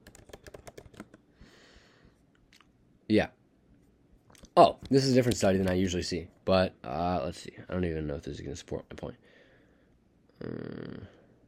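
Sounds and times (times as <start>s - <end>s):
keystrokes on a computer keyboard typing a search into Google: 0.0s - 1.2s
speech: 3.1s - 3.4s, 4.6s - 9.3s, 10.4s - 11.2s.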